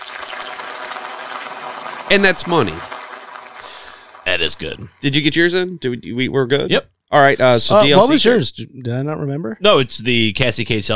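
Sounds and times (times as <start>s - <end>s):
golf clap sound effect: 0.0s - 4.8s
speech: 2.1s - 3.0s, 4.4s - 10.9s.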